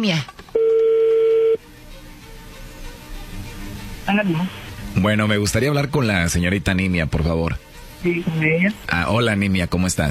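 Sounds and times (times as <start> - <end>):
speech: 0.0 - 0.4, 4.1 - 10.0
electronic telephone tone: 0.6 - 1.6.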